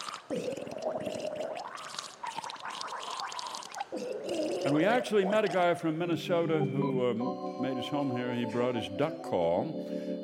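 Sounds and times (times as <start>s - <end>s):
person gargling a melody: 0.0s - 5.8s
speech: 4.7s - 10.2s.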